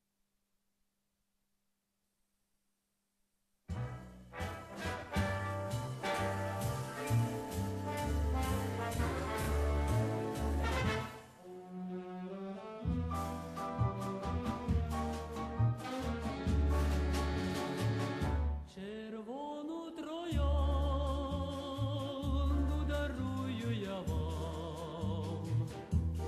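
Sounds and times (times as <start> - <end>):
Ukrainian tango music: 3.7 - 18.7, 20.4 - 26.2.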